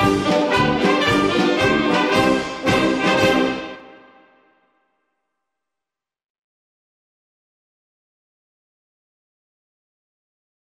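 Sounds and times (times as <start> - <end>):
music: 0.0 - 6.1.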